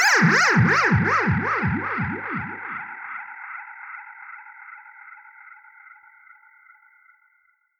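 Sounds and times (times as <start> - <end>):
ululation: 0.1 - 2.9.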